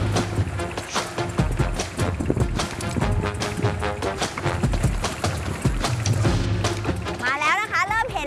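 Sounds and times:
fishing boat moving slowly while hauling net: 0:00.0 - 0:08.2.

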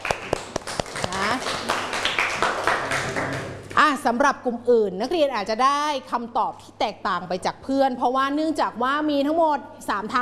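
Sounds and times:
classroom clapping: 0:00.0 - 0:03.8
speech: 0:04.0 - 0:10.2.

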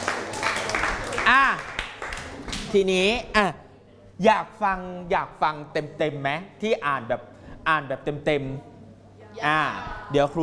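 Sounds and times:
students clapping: 0:00.0 - 0:02.7
speech: 0:02.7 - 0:03.6, 0:04.2 - 0:08.7, 0:09.4 - 0:10.4.

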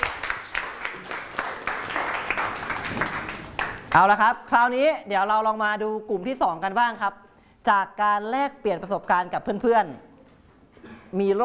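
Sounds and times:
group applause: 0:00.0 - 0:04.1
speech: 0:03.9 - 0:10.1, 0:11.1 - 0:11.4.

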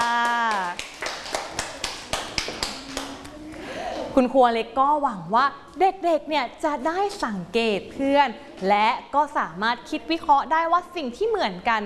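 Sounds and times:
children clapping for a classmate: 0:00.0 - 0:03.4
speech: 0:04.2 - 0:11.8.

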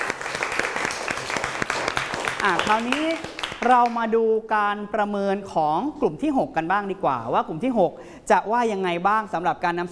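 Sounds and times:
group applauding a student group: 0:00.0 - 0:04.0
speech: 0:02.4 - 0:09.9.

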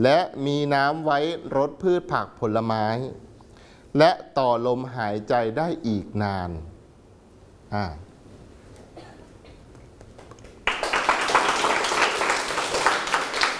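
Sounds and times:
speech: 0:00.0 - 0:03.3, 0:03.9 - 0:06.7, 0:07.7 - 0:08.1
students applauding: 0:10.2 - 0:13.5.

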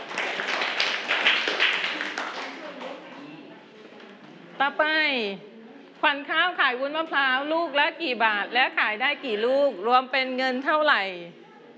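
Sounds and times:
students clapping: 0:00.0 - 0:03.0
speech: 0:04.7 - 0:11.4.

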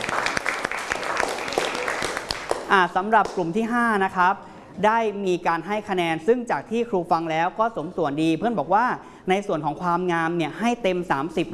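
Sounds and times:
class applauding: 0:00.0 - 0:02.7
speech: 0:02.7 - 0:11.5.

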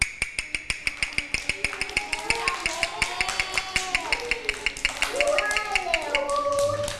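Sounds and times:
fast rhythmic beat for children's movement: 0:00.0 - 0:06.9.

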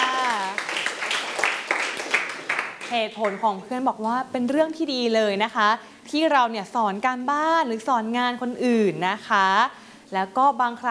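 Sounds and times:
class of students clapping for a classmate: 0:00.0 - 0:03.4
speech: 0:02.9 - 0:10.8.

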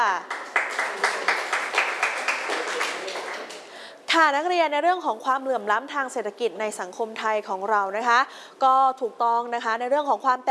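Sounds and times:
classroom applause: 0:00.2 - 0:03.8
speech: 0:04.2 - 0:10.4.

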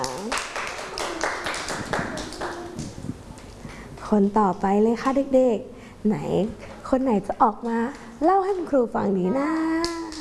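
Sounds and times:
children clapping hands: 0:00.0 - 0:03.5, 0:09.5 - 0:10.1
speech: 0:04.1 - 0:09.9.

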